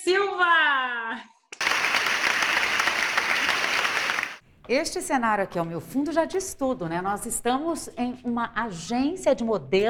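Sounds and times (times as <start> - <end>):
speech: 0.0 - 1.3, 4.7 - 9.8
audience applause: 1.6 - 4.4.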